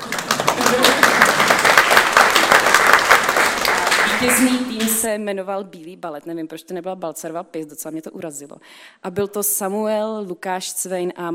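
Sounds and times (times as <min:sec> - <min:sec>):
audience applause: 0:00.0 - 0:04.9
speech: 0:04.2 - 0:11.3.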